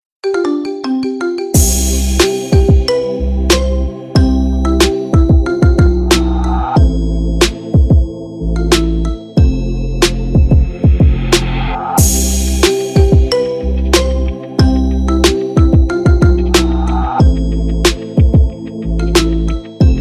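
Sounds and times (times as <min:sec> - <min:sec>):
marimba remix: 0:00.2 - 0:19.9.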